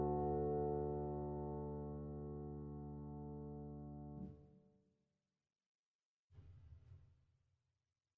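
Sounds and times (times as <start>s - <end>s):
piano: 0.0s - 4.5s.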